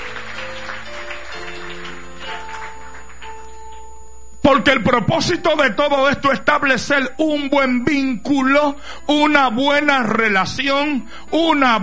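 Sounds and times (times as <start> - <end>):
crowd clapping: 0.0 - 4.0
keyboard or organ chords: 0.0 - 11.8
speech: 4.5 - 11.8.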